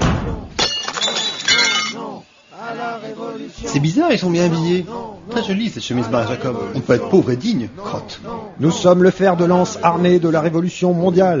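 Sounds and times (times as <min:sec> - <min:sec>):
car glass breaking in a smash: 0:00.6 - 0:02.0
glass shards tinkling: 0:00.6 - 0:02.1
speech: 0:03.4 - 0:11.3.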